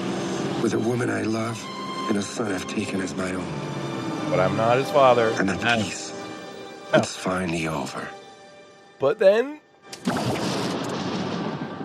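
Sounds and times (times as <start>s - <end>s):
speech: 0.6s - 6.0s, 6.9s - 8.2s, 9.0s - 10.2s
thunder rumbling: 10.3s - 11.8s.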